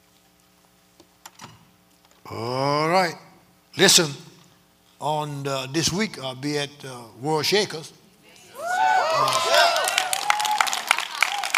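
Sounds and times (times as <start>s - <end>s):
speech: 2.3s - 3.2s, 3.8s - 4.2s, 5.0s - 8.0s, 9.2s - 9.6s
crowd clapping: 8.6s - 11.5s.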